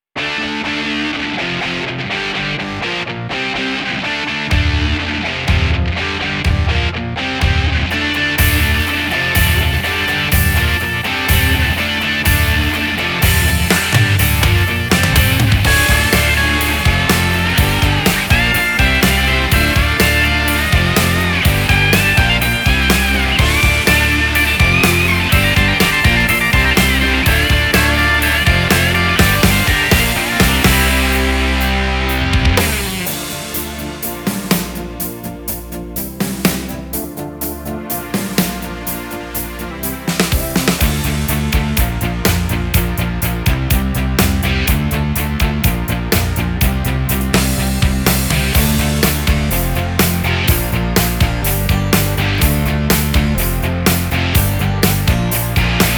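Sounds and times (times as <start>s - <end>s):
rock music: 0.0s - 55.9s.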